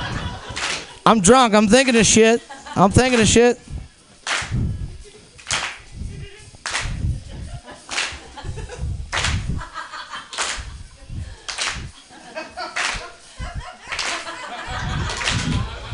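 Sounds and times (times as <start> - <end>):
faint laughter: 0.0 - 0.9, 6.1 - 6.6, 7.2 - 15.9
crowd clapping in rhythm: 0.0 - 2.2, 2.8 - 3.6, 4.2 - 4.7, 5.4 - 6.0, 6.6 - 7.2, 7.8 - 12.1, 12.7 - 15.9
speech: 1.0 - 3.7.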